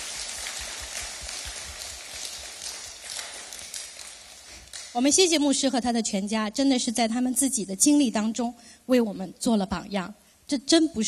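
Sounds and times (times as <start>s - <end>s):
applause: 0.0s - 5.0s
speech: 5.0s - 11.0s.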